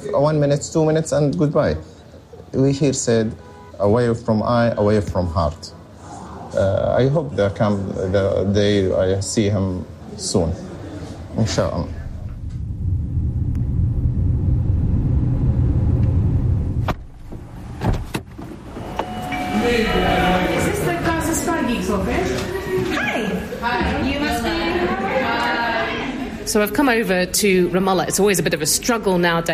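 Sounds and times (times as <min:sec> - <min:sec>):
speech: 0:00.0 - 0:05.8, 0:06.5 - 0:10.7, 0:11.4 - 0:12.0, 0:26.5 - 0:29.5
busy loud street noise: 0:00.0 - 0:29.5
low engine rumble from inside a vehicle: 0:11.4 - 0:19.4
bright horn-like tones: 0:18.7 - 0:22.7.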